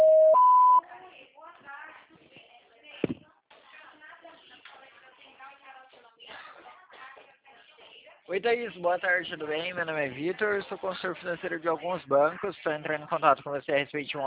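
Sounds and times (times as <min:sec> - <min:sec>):
voicemail recording beep tones: 0:00.0 - 0:00.8
speech: 0:08.3 - 0:14.2.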